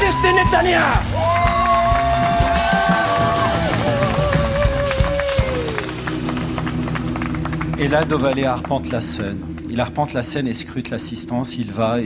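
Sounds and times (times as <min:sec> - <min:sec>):
crowd cheering: 0:00.0 - 0:08.3
speech: 0:00.4 - 0:01.3, 0:07.8 - 0:12.0
crowd applause: 0:01.0 - 0:09.0
whistles and whoops: 0:01.2 - 0:05.9.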